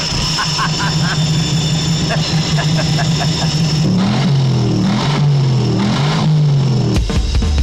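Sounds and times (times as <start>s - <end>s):
laughter: 0.0s - 3.8s
supercharged V8 car engine running: 2.5s - 7.5s.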